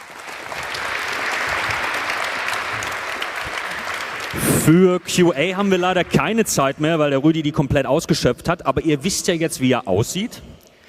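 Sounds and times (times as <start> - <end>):
audience applause: 0.0 - 7.3
speech: 4.7 - 10.5.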